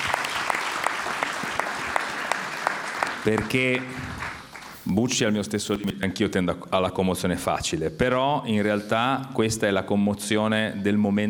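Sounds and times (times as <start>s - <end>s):
audience applause: 0.0s - 5.4s
speech: 3.2s - 4.2s, 4.8s - 11.2s.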